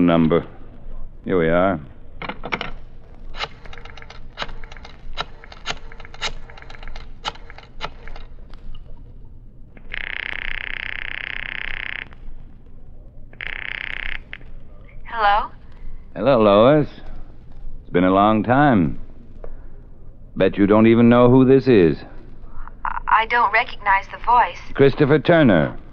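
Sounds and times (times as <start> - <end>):
speech: 0.0 - 0.6, 1.2 - 2.6, 18.2 - 19.0, 20.4 - 22.1, 23.2 - 25.8
pages of a telephone book being flipped: 3.3 - 8.9
high-pitched buzzing tone: 9.8 - 15.5.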